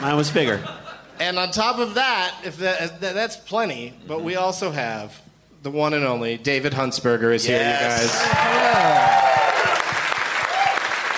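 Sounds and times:
speech: 0.0s - 9.3s
person whooping: 7.8s - 11.0s
audience applause: 8.0s - 11.1s.

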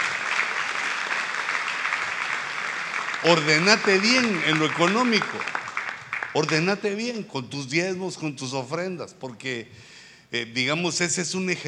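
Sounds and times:
audience clapping hands: 0.0s - 7.0s
speech: 3.2s - 5.6s, 6.3s - 11.6s.

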